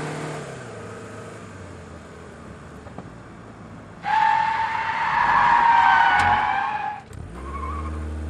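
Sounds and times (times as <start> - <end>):
sedan skidding: 4.0 - 8.1.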